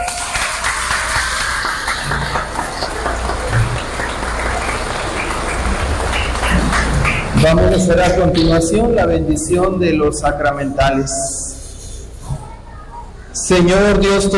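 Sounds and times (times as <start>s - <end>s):
congregation applause at a church service: 0.0s - 8.9s
speech: 7.4s - 11.4s, 13.5s - 14.3s.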